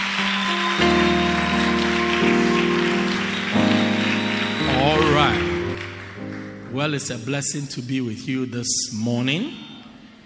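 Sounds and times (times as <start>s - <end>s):
audience clapping: 0.0s - 7.1s
speech: 6.8s - 9.7s.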